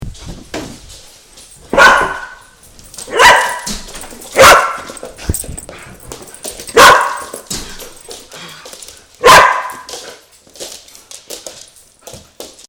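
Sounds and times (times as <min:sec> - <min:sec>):
Phoebe the dog barking: 0:01.7 - 0:05.1, 0:06.7 - 0:07.5, 0:09.2 - 0:09.9.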